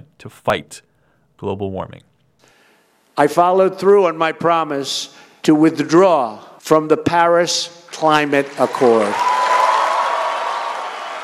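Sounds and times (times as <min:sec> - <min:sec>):
speech: 0:00.2 - 0:02.1, 0:03.2 - 0:09.3
conference audience applause: 0:08.2 - 0:11.2.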